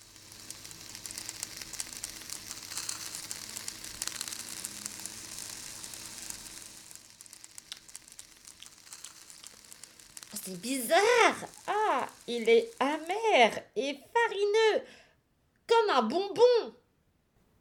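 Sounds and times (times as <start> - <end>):
fish cooking in an oven: 0.0 - 13.6
speech: 10.5 - 15.0, 15.9 - 16.8.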